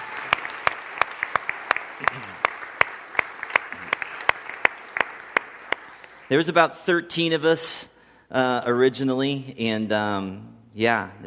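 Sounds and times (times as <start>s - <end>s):
audience applause: 0.0s - 6.3s
speech: 6.3s - 11.2s.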